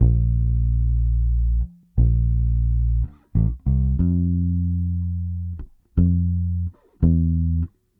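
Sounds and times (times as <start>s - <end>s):
70s analog funk bass line: 0.0s - 7.8s.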